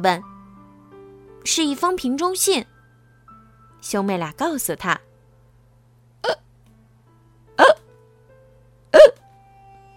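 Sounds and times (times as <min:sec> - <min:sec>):
speech: 0:00.0 - 0:00.3, 0:01.4 - 0:02.6, 0:03.8 - 0:05.1
low steady hum: 0:00.0 - 0:09.9
violent hiccups: 0:06.2 - 0:06.5, 0:07.6 - 0:07.9, 0:08.9 - 0:09.2.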